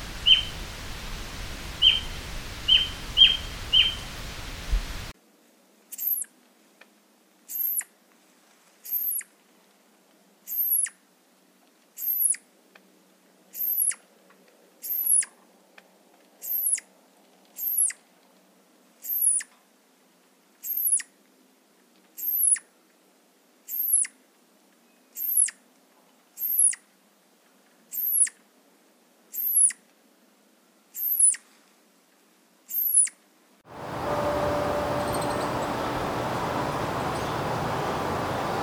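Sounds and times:
flying squirrel call: 0:00.0 - 0:00.8, 0:01.6 - 0:05.1, 0:08.8 - 0:09.2, 0:10.5 - 0:10.9, 0:12.0 - 0:12.4, 0:13.5 - 0:14.0, 0:14.8 - 0:15.3, 0:16.4 - 0:16.8, 0:17.6 - 0:18.0, 0:20.6 - 0:21.0, 0:22.2 - 0:22.6, 0:25.2 - 0:25.6, 0:26.4 - 0:26.8, 0:27.9 - 0:28.4, 0:29.4 - 0:29.8, 0:31.0 - 0:31.4, 0:32.7 - 0:33.1, 0:33.8 - 0:38.6.

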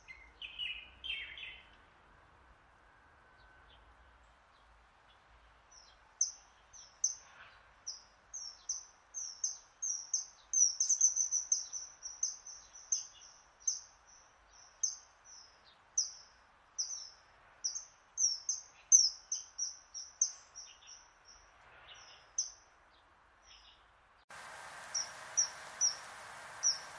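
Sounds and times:
faint steady hiss: 0:00.0 - 0:26.9
harsh buzzy bird notes: 0:24.3 - 0:26.9.

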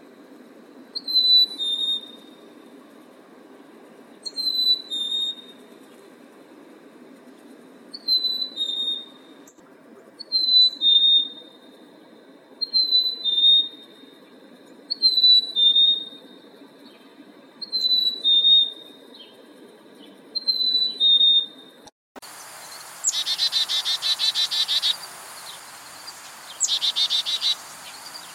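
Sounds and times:
bird whistled song: 0:01.0 - 0:02.2, 0:04.3 - 0:05.5, 0:08.0 - 0:09.1, 0:10.2 - 0:11.4, 0:12.6 - 0:13.8, 0:17.6 - 0:18.8, 0:20.4 - 0:21.5, 0:23.0 - 0:28.3.

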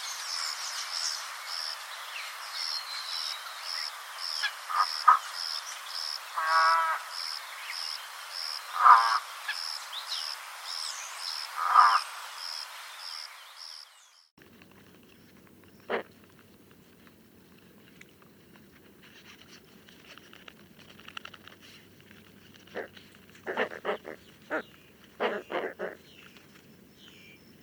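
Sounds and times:
spoonbill call: 0:04.2 - 0:10.4, 0:11.2 - 0:12.1, 0:15.7 - 0:16.1, 0:22.6 - 0:27.5.

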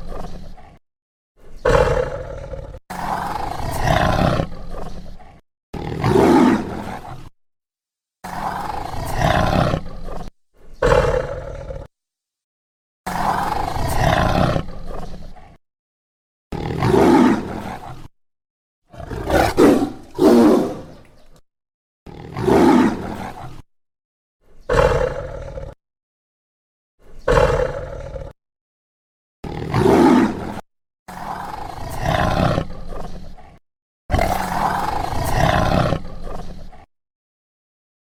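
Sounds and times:
tiger roaring: 0:00.0 - 0:00.8, 0:01.6 - 0:07.3, 0:08.2 - 0:11.9, 0:13.1 - 0:15.6, 0:16.5 - 0:18.1, 0:18.9 - 0:21.2, 0:22.1 - 0:23.6, 0:24.7 - 0:25.8, 0:27.2 - 0:28.4, 0:29.4 - 0:36.9.

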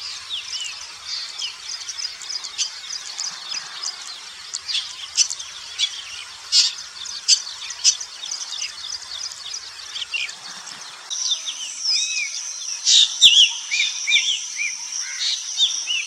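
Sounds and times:
Black Drongo: 0:00.0 - 0:16.0.

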